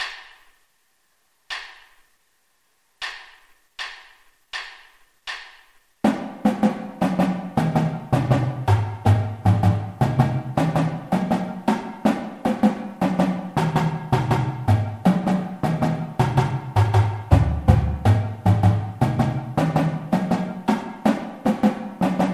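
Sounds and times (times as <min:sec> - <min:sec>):
marching drum warm-ups: 0:05.5 - 0:22.3.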